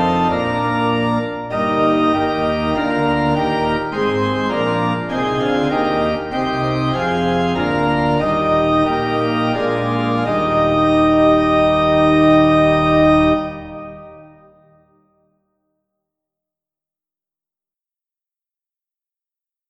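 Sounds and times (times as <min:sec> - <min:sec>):
organ: 0:00.0 - 0:14.8.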